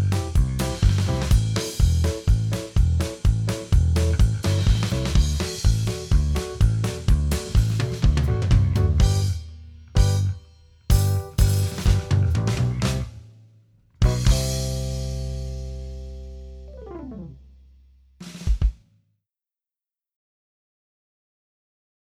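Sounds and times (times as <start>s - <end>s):
music without guitar: 0.0s - 13.2s, 14.0s - 17.8s.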